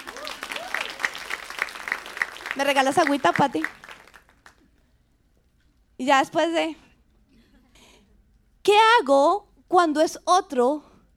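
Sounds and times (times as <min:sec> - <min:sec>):
audience applause: 0:00.0 - 0:04.6
speech: 0:02.6 - 0:03.8, 0:06.0 - 0:06.8, 0:08.7 - 0:10.9.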